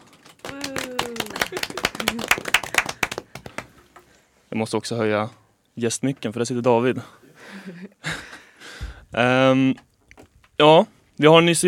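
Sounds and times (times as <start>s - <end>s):
small round of applause: 0.2s - 3.8s
laughter: 0.5s - 3.1s, 7.4s - 8.4s
speech: 0.9s - 2.5s, 4.5s - 7.9s, 9.1s - 9.9s, 10.6s - 11.6s.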